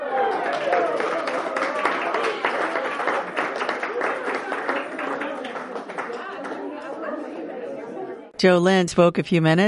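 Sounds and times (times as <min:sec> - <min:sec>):
applause at ribbon cutting: 0:00.0 - 0:07.0
crowd chattering and cheering: 0:00.0 - 0:08.4
speech: 0:08.4 - 0:09.6.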